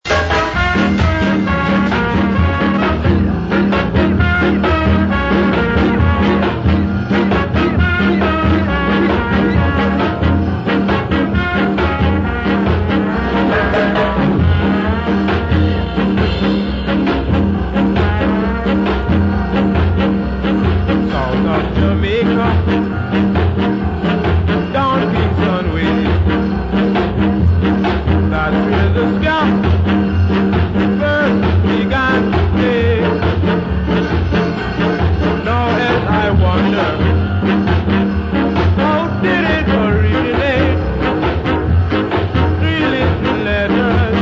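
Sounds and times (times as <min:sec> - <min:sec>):
ska music: 0:00.0 - 0:44.1.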